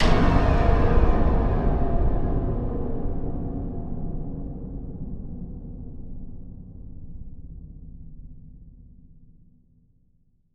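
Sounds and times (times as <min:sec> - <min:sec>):
horror sting: 0:00.0 - 0:05.4.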